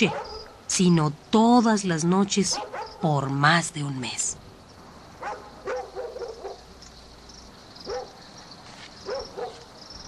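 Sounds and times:
dogs barking at night: 0:00.0 - 0:00.6, 0:02.5 - 0:03.0, 0:05.2 - 0:06.7, 0:07.8 - 0:08.2, 0:09.0 - 0:09.8
speech: 0:00.0 - 0:04.4.

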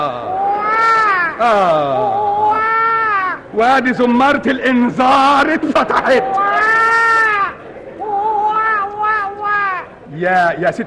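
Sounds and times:
infant crying: 0:00.0 - 0:03.5, 0:06.2 - 0:10.0
speech: 0:01.4 - 0:02.1, 0:03.6 - 0:06.4, 0:10.2 - 0:10.8.

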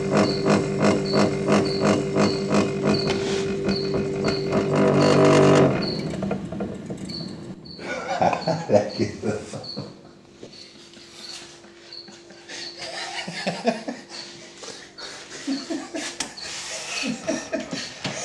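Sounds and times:
failing refrigerator compressor humming, sputtering and shutting off: 0:00.0 - 0:18.2
people chuckling: 0:07.8 - 0:18.2.

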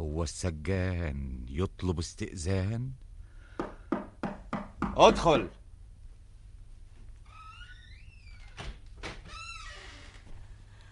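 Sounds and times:
speech: 0:00.2 - 0:03.0, 0:05.0 - 0:05.6
door creaking open in a drama scene: 0:07.2 - 0:10.4.

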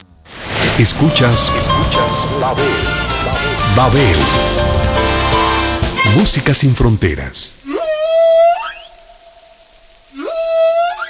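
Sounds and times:
speech: 0:00.8 - 0:05.1, 0:06.1 - 0:07.7
whale song: 0:07.6 - 0:09.4, 0:10.1 - 0:11.0.

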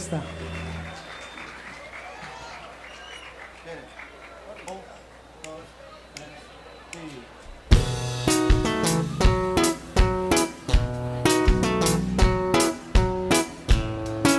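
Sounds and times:
audience clapping: 0:00.0 - 0:07.2
crowd chatter: 0:00.0 - 0:14.2.

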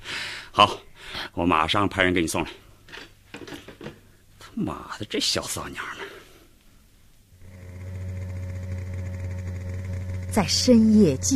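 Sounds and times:
speech: 0:00.6 - 0:02.6, 0:04.6 - 0:06.1, 0:10.4 - 0:11.3
motorcycle speeding through streets: 0:07.4 - 0:11.3.

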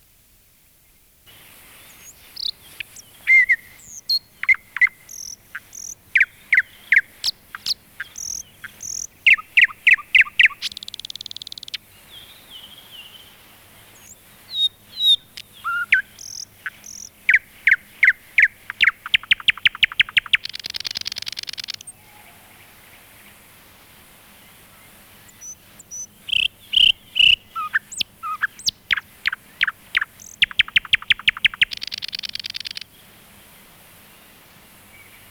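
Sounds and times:
common nightingale singing: 0:01.3 - 0:23.4, 0:24.8 - 0:33.5.

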